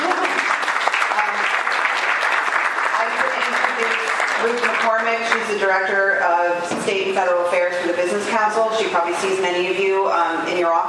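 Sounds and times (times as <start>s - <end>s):
audience applause: 0.0s - 5.2s
speech: 5.7s - 10.8s.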